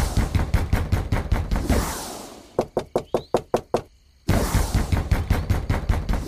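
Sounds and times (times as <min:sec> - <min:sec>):
knocking on a wooden castle door: 0:00.2 - 0:01.5, 0:02.6 - 0:03.9, 0:04.7 - 0:06.1.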